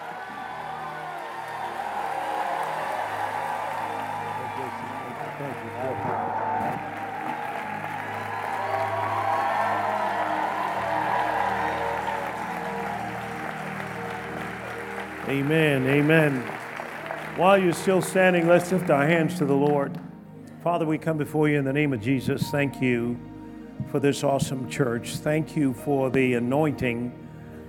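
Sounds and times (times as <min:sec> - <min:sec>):
crowd noise: 0:00.0 - 0:20.0
church audience applauding: 0:00.0 - 0:20.2
speech: 0:15.3 - 0:16.5, 0:17.4 - 0:20.0, 0:20.6 - 0:23.3, 0:23.9 - 0:27.2.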